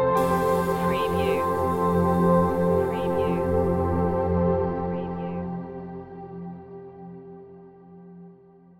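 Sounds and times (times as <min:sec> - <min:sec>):
mystic piano stinger: 0:00.2 - 0:06.2.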